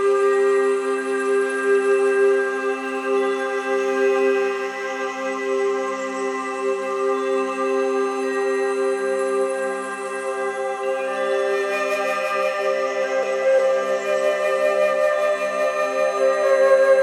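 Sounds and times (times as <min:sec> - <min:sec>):
love frequency meditation tones: 0:00.2 - 0:17.0.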